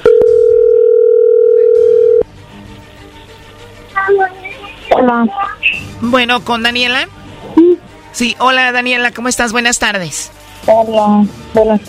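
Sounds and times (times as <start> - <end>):
telephone dial tone as a call connects: 0.0 - 2.2
speech: 5.0 - 7.2, 8.2 - 11.8.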